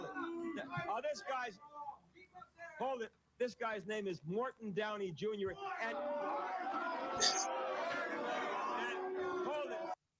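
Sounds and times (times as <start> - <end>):
speech: 0.6 - 1.7, 2.6 - 9.0
studio audience cheering and shouting: 5.6 - 10.0.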